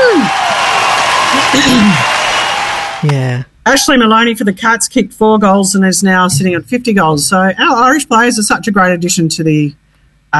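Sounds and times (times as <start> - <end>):
applause: 0.0 - 3.1
speech: 1.5 - 2.1, 3.0 - 10.3.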